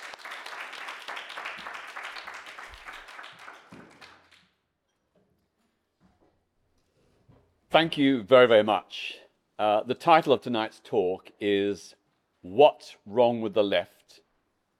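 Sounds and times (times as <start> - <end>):
audience applause: 0.0 - 4.4
speech: 7.8 - 14.0.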